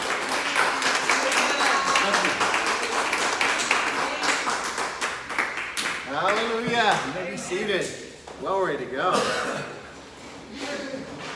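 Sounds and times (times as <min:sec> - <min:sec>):
church congregation in Houston, Texas applauding to welcome a pastor: 0:00.0 - 0:07.2
speech: 0:07.0 - 0:09.8.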